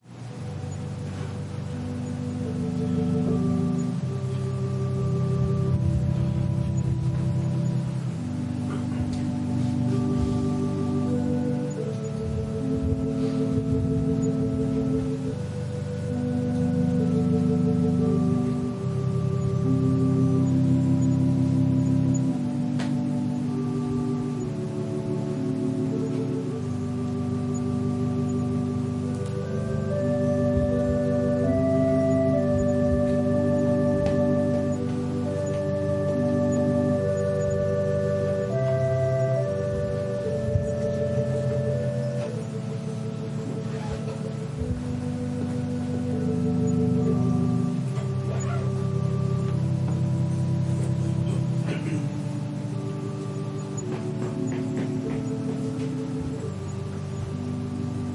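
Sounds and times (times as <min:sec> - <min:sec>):
organ prelude: 0:00.0 - 0:58.1.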